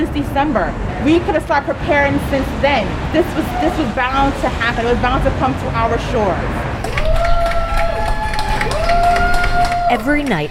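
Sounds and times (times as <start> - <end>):
speech: 0.2 - 6.7, 9.9 - 10.4
people clapping and cheering from their windows for doctors and nurses: 6.8 - 10.4.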